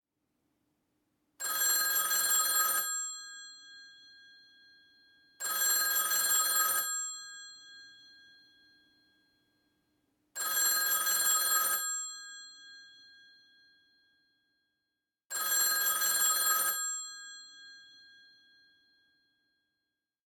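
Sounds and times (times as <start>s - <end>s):
1970 telephone ringing in the Netherlands: 1.4s - 4.1s, 5.3s - 9.0s, 10.4s - 12.9s, 15.3s - 18.3s.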